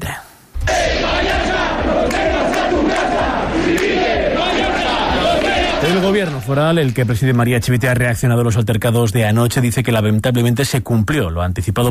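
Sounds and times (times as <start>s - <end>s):
crowd shouting protest chants: 0.6s - 6.5s
speech: 5.9s - 11.8s.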